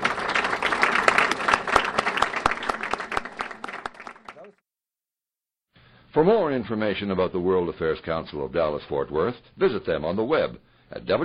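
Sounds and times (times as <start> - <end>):
audience applause: 0.0 - 4.6
speech: 6.2 - 11.2.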